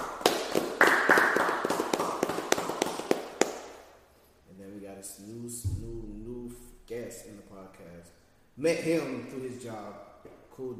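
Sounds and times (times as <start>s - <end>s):
clapping: 0.0s - 3.7s
speech: 7.7s - 10.7s.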